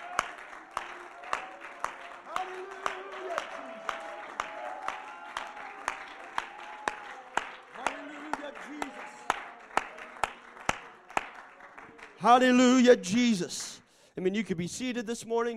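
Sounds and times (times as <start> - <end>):
audience clapping: 0.0 - 13.8
audience shouting: 1.2 - 8.1
speech: 12.2 - 15.5.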